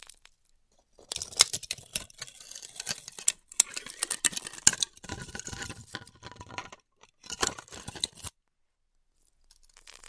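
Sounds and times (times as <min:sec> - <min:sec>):
styrofoam cut with a hot wire: 0:01.0 - 0:05.9, 0:06.4 - 0:08.3.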